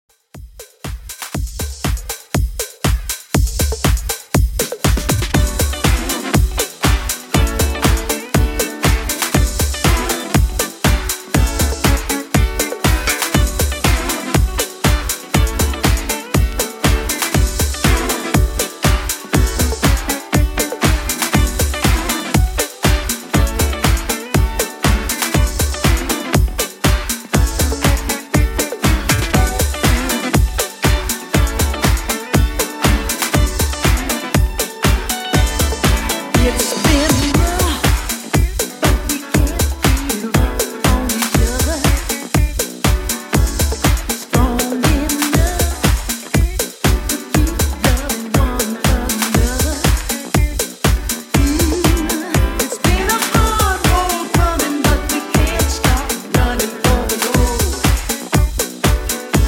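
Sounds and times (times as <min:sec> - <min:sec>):
disco mix: 0:00.2 - 0:59.4.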